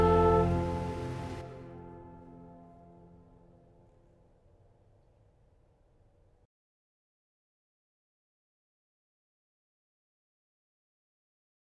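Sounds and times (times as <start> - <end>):
sopranos and tenors singing: 0.0 - 1.4.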